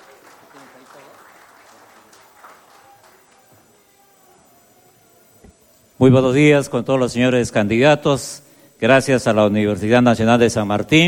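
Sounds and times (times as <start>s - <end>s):
audience applause: 0.0s - 4.0s
speech: 6.0s - 11.0s.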